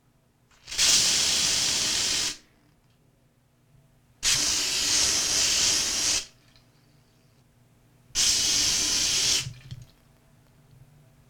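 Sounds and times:
aerosol spray: 0.6s - 2.4s, 4.2s - 6.3s, 8.2s - 9.6s.

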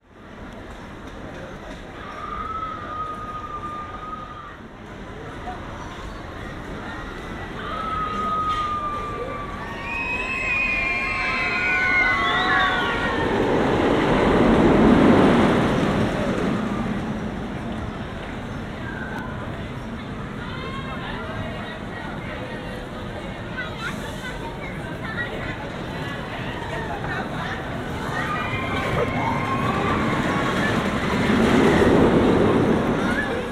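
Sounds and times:
rollercoaster: 0.1s - 33.5s.

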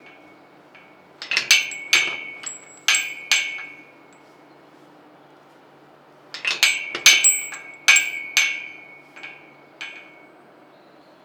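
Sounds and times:
chain rattling on fence: 0.8s - 4.0s, 6.4s - 10.2s.

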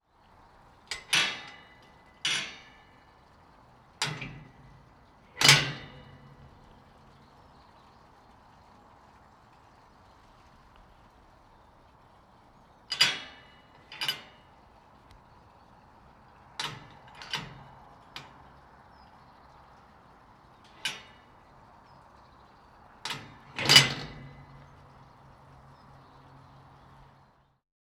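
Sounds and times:
iron gate latch opening and closing in Abbey Gardens courtyard: 0.9s - 3.2s, 4.0s - 6.9s, 12.9s - 14.5s, 16.6s - 19.2s, 20.6s - 21.4s, 23.0s - 27.1s.

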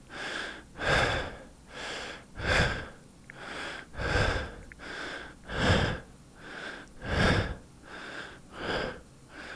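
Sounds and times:
heavy breathing: 0.0s - 9.5s.

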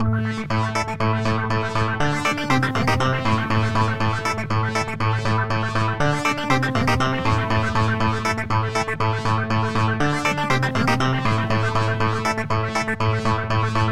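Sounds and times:
fuzz clavinet groove: 0.0s - 13.9s.

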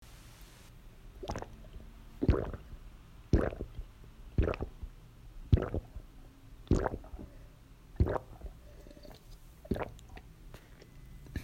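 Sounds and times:
gulping: 2.2s - 2.7s, 3.3s - 3.8s, 4.4s - 4.8s, 5.5s - 6.0s, 6.7s - 7.4s, 8.0s - 10.3s.

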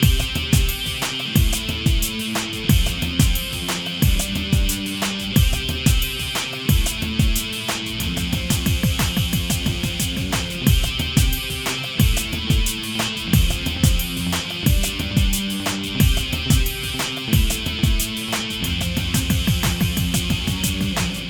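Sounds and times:
ska loop: 0.0s - 21.2s.

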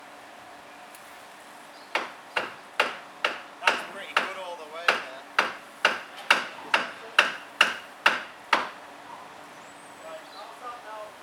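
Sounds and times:
building work: 2.0s - 9.4s.

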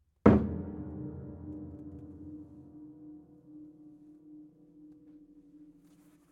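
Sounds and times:
piano hits: 0.3s - 3.6s.

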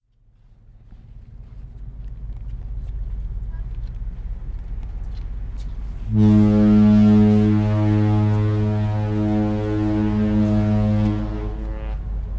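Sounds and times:
Oslofjord ship stern foghorn: 6.0s - 12.2s.

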